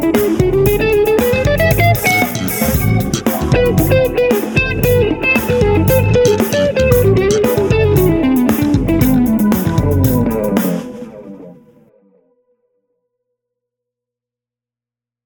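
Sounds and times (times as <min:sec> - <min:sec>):
funk music: 0:00.0 - 0:11.6.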